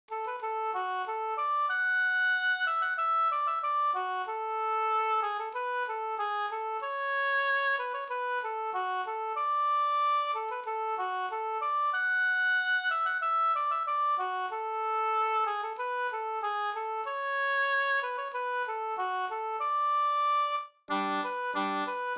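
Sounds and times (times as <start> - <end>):
polka music: 0.1 - 22.1.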